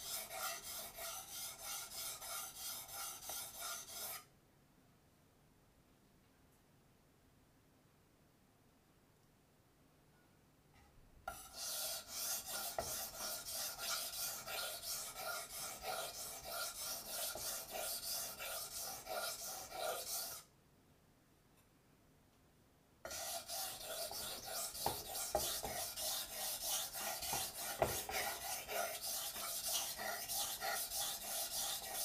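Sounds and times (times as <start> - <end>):
kitchen knife sharpened on a stone: 0.0 - 4.2, 11.3 - 20.4, 23.1 - 32.0.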